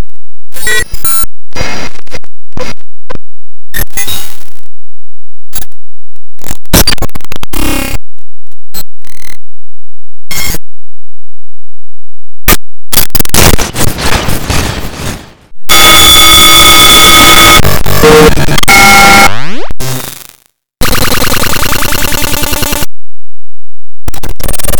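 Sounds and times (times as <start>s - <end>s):
noise: 0.0s - 4.7s, 5.5s - 9.4s, 12.4s - 22.9s, 24.1s - 24.7s.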